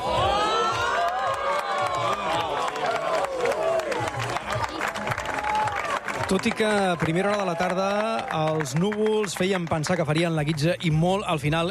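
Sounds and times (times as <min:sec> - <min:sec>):
crowd cheering at a solar eclipse, Ebre Observatory, Roquetes: 0:00.0 - 0:10.5
scattered clapping: 0:00.8 - 0:10.7
speech: 0:06.3 - 0:11.7.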